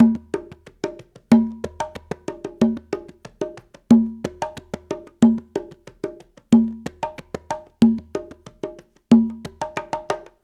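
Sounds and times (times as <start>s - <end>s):
guaguanco rumba music: 0.0s - 10.4s.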